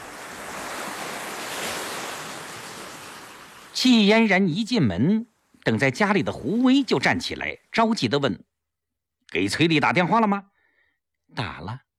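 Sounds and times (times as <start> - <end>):
ocean waves at the seashore: 0.0 - 8.2
speech: 3.8 - 8.5, 9.3 - 10.5, 11.3 - 11.8.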